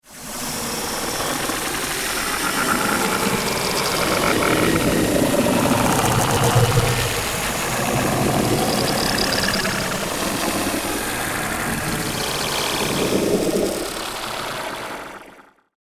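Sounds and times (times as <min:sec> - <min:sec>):
creepy alien nest ambience: 0:00.2 - 0:15.4.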